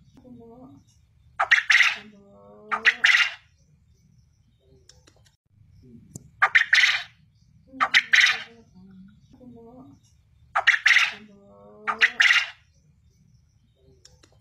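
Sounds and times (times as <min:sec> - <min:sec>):
quail calling in rasping triple phrases: 0:01.4 - 0:03.5, 0:06.4 - 0:08.7, 0:10.6 - 0:12.6.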